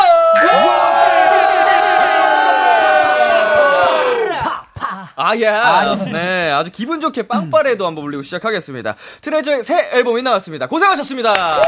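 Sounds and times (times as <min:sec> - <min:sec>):
fans shouting and cheering: 0:00.0 - 0:04.6
speech: 0:05.2 - 0:11.6.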